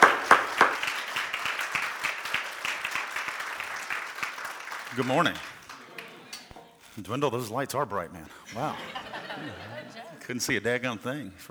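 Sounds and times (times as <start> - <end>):
church congregation clapping to welcome guest pastors: 0.0 - 6.8
laughter: 4.8 - 6.7, 8.3 - 11.5
speech: 5.0 - 5.5, 7.0 - 11.5.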